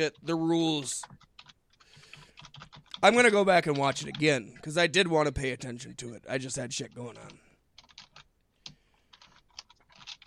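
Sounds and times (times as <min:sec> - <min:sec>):
speech: 0:00.0 - 0:01.2, 0:03.0 - 0:07.4
typing on a computer keyboard: 0:00.0 - 0:04.4, 0:07.2 - 0:10.2.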